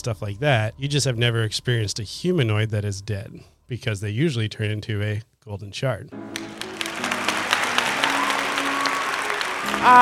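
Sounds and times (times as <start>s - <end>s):
speech: 0.0s - 6.6s, 9.8s - 9.9s
crowd applause sound effect: 6.2s - 9.9s.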